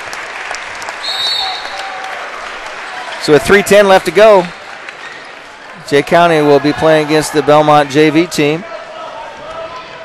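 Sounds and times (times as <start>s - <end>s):
gym crowd clapping: 0.0s - 6.5s
scattered cheers: 0.9s - 10.0s
speech: 3.2s - 4.6s, 5.9s - 8.7s.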